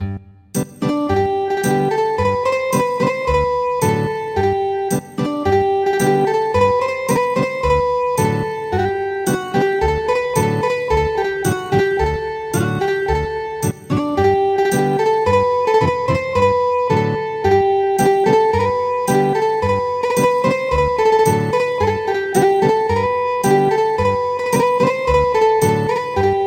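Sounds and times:
ethnic guitar music: 0:00.0 - 0:26.4.

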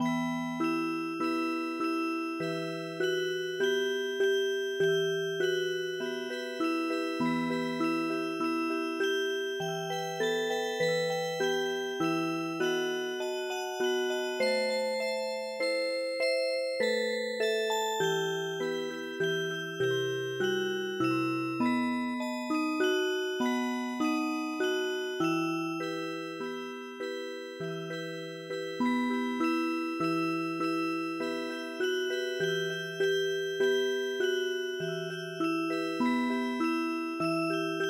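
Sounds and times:
music box: 0:00.0 - 0:37.8.

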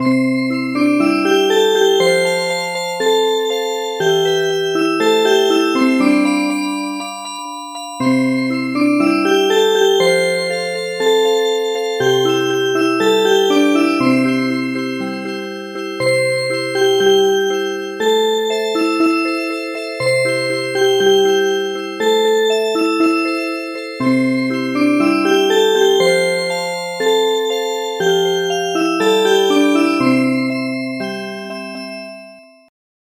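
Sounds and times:
music box: 0:00.0 - 0:32.7.

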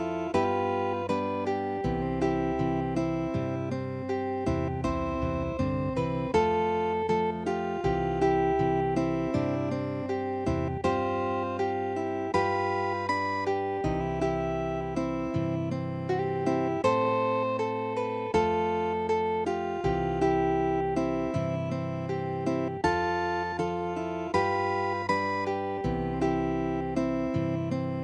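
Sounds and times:
classical guitar piece: 0:00.0 - 0:28.0.

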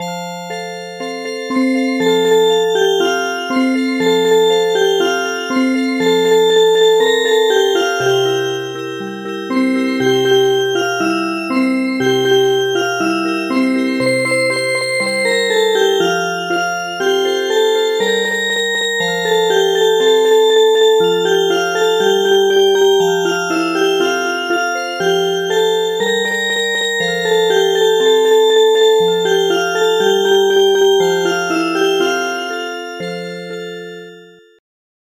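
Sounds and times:
music box: 0:00.0 - 0:34.6.

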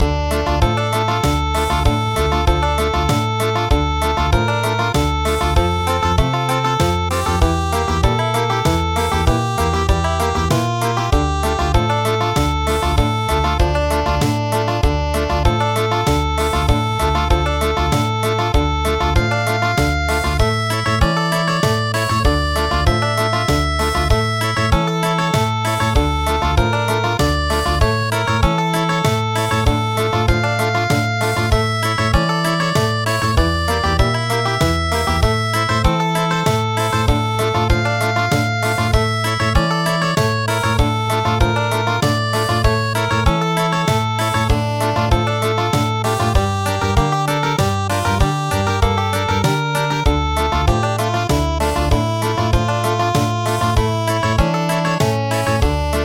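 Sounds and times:
country music: 0:00.0 - 0:56.0.

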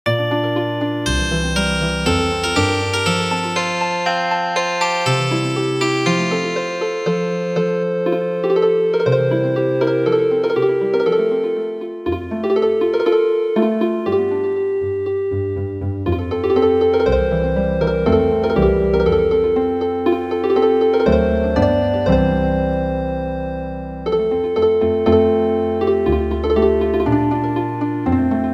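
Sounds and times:
healing harp: 0:00.1 - 0:28.5.

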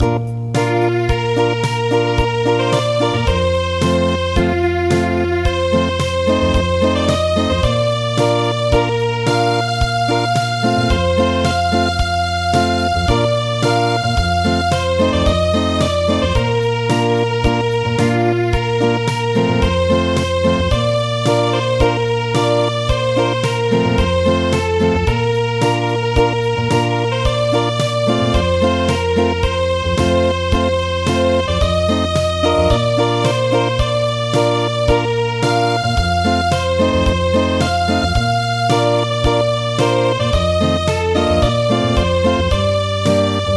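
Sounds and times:
acoustic music: 0:00.0 - 0:43.5.

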